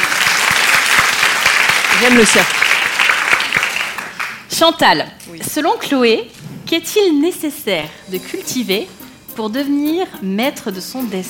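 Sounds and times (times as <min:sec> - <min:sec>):
audience applause: 0:00.0 - 0:04.5
speech: 0:02.0 - 0:02.6, 0:04.6 - 0:11.2.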